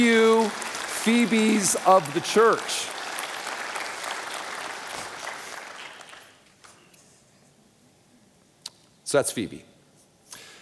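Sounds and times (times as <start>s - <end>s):
speech: 0.0s - 3.0s, 9.1s - 9.7s
audience applause: 0.0s - 6.5s.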